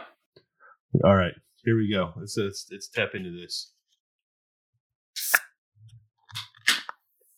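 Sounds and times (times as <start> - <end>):
speech: 0.9 - 3.8
can of 7.9% ABV beer cracking open with a weak pop and hiss: 5.2 - 5.5.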